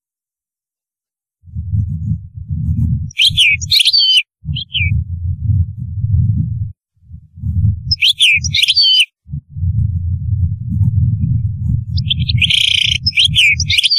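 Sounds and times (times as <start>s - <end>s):
low rumbling noise: 1.4s - 3.6s, 4.4s - 8.6s, 9.2s - 13.7s
European goldfinch song: 3.1s - 5.0s, 7.9s - 9.1s, 11.9s - 13.9s.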